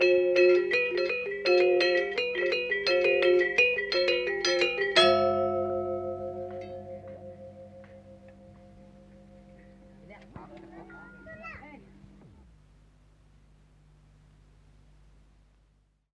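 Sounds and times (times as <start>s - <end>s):
selunding gamelan music for Rejang dance: 0.0s - 12.0s.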